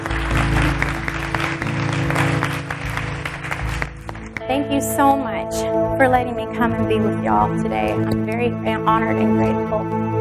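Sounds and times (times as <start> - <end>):
audience clapping: 0.0 - 5.1
speech: 4.5 - 10.1.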